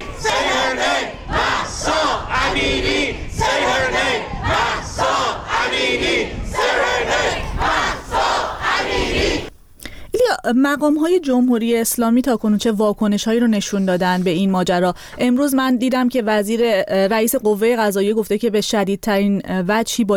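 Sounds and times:
large protest crowd chanting: 0.0s - 9.5s
speech: 10.5s - 20.1s.

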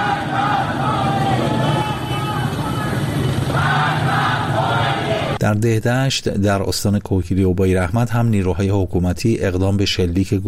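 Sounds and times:
large crowd of protesters chanting slogans: 0.0s - 5.4s
speech: 5.4s - 10.4s.

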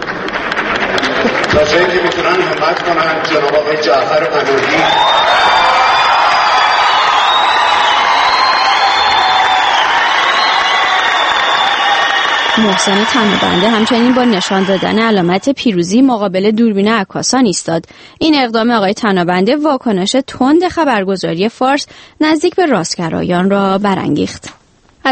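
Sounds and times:
audience applauding: 0.0s - 15.7s
speech: 1.6s - 5.6s, 12.6s - 25.1s.

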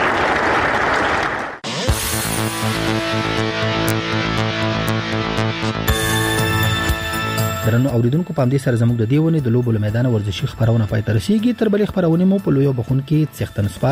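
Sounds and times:
audience applauding young people's and children's sports demonstrations: 0.0s - 1.9s
music: 1.6s - 13.8s
speech: 7.7s - 13.8s.

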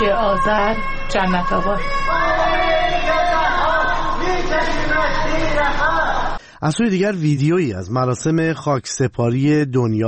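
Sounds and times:
speech: 0.1s - 2.5s, 4.3s - 10.0s
crowd chanting anti-government slogans: 1.1s - 6.4s.

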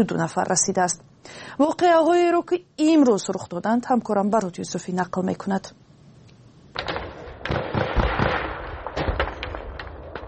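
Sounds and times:
speech: 0.0s - 5.8s
artillery booms: 6.8s - 10.2s
gunshots: 6.8s - 10.2s.

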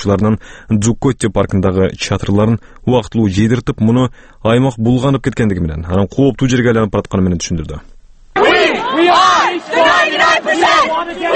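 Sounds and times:
speech: 0.0s - 7.9s
Occupy Wall Street protesters chanting near Zuccotti Park: 8.4s - 11.3s.

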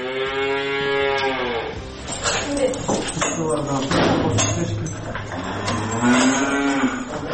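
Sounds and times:
cows mooing on a farm in Sretenka village in Chüy: 0.0s - 1.8s, 5.3s - 7.3s
people talking: 2.4s - 5.2s.

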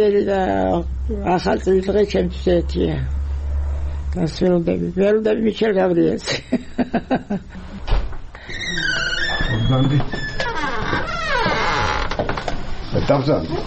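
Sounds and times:
speech: 0.0s - 3.2s, 4.1s - 7.7s, 9.7s - 10.2s, 13.0s - 13.6s
laughter: 6.3s - 7.8s
creaking door of a room in a retirement home: 7.6s - 12.7s.

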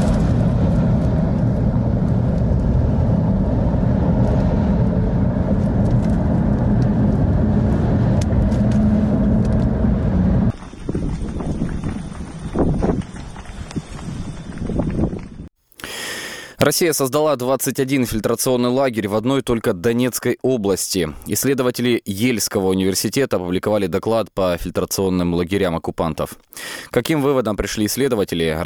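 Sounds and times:
strong wind blowing: 0.0s - 15.5s
speech: 16.7s - 28.6s.

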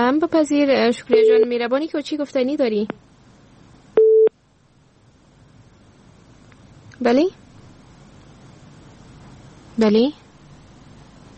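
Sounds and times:
speech: 0.0s - 3.0s, 7.0s - 7.4s, 9.8s - 10.2s
faint hiss: 0.0s - 11.3s
telephone tone after a dropped call to a live radio show: 1.1s - 1.5s, 4.0s - 4.3s.

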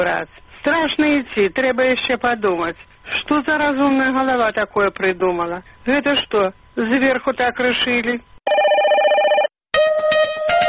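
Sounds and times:
speech: 0.0s - 8.3s
electronic telephone ringing as radio call-in show jingle: 8.5s - 9.6s.

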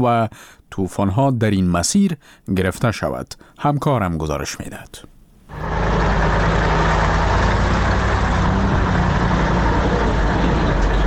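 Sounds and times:
speech: 0.0s - 5.8s
passenger and cargo vehicle traffic: 5.5s - 11.0s
road noise: 5.5s - 11.0s.

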